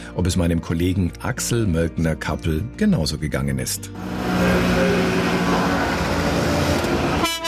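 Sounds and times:
speech: 0.2 - 4.9
Ape three-wheeler engines rattling: 4.0 - 7.2
Ape three-wheeler horns honking: 4.0 - 7.4.

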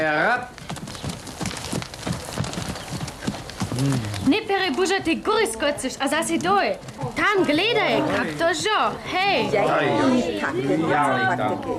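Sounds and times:
horse hooves clip-clopping: 0.0 - 9.4
speech: 3.8 - 11.7.

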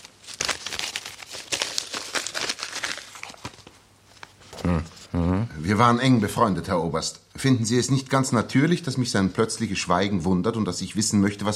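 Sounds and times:
paper letters taken out of a pocket, crinkling and rustling: 0.0 - 4.7
speech: 4.7 - 11.5.

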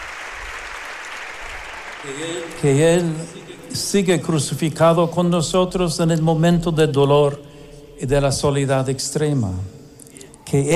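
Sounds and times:
large crowd applauding: 0.0 - 4.1
speech: 2.0 - 9.8, 10.5 - 10.7.

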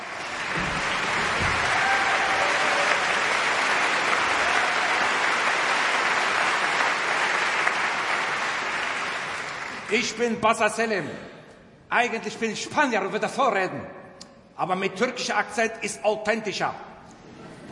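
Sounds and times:
audience applause: 0.0 - 9.9
whistles and cheers: 0.2 - 5.4
speech: 9.9 - 14.0, 14.6 - 16.9.

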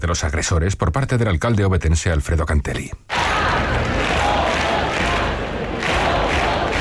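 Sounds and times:
speech: 0.0 - 3.2
protest crowd chanting in Oviedo: 3.1 - 6.7.

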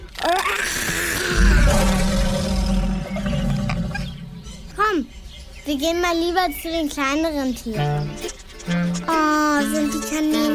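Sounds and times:
speech: 0.2 - 0.9, 5.7 - 8.8, 9.6 - 10.5
lion roaring: 0.6 - 4.7.

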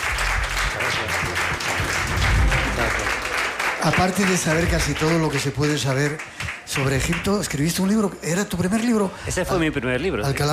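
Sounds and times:
audience applause: 0.0 - 7.7
speech: 3.8 - 10.5.

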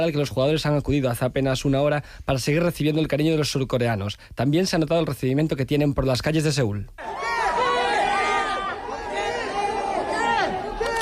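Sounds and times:
speech: 0.0 - 7.3
excited fans shouting a player's name: 7.0 - 11.0.

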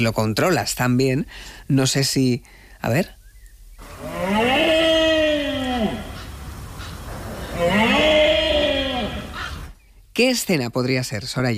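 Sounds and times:
speech: 0.0 - 3.2, 10.2 - 11.5
deer bellowing: 3.8 - 9.8.

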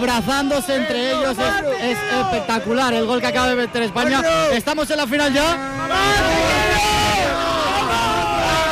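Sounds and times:
speech: 0.0 - 6.9
crowd shouting and celebrating in plaza: 0.0 - 8.6.

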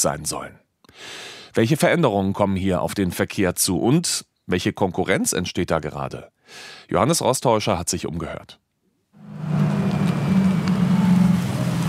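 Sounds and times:
speech: 0.0 - 8.6
small blue electric minibus arriving almost silently: 9.2 - 11.8.

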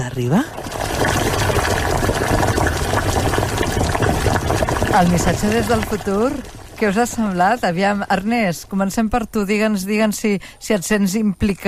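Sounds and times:
speech: 0.0 - 2.0, 4.9 - 11.6
water boiling in a cooking pot: 0.0 - 10.4.

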